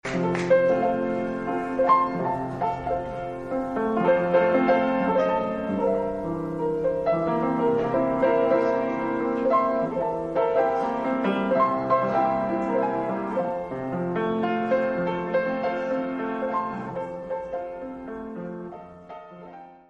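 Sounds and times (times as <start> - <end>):
instrumental music: 0.0 - 19.8.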